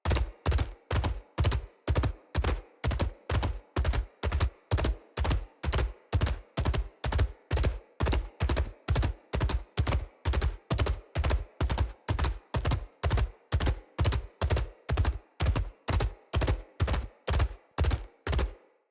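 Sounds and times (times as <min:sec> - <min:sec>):
battle dog running footsteps: 0:00.0 - 0:18.5.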